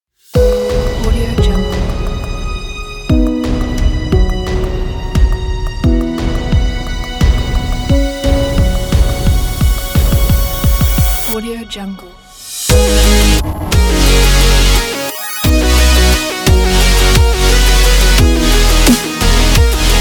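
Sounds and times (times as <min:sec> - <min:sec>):
dubstep music: 0:00.4 - 0:20.0.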